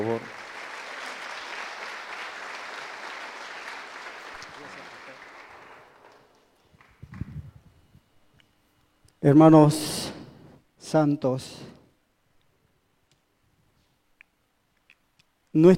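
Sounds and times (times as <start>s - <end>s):
congregation applause at a church service welcoming a speaker from Argentina: 0.0s - 7.4s
speech: 9.2s - 10.0s, 10.9s - 11.8s, 15.6s - 15.7s.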